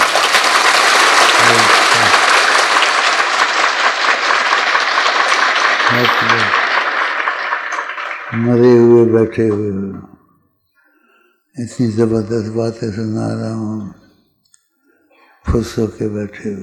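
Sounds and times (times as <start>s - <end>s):
audience clapping: 0.0s - 9.8s
speech: 8.4s - 10.2s, 11.6s - 14.0s, 15.5s - 16.6s.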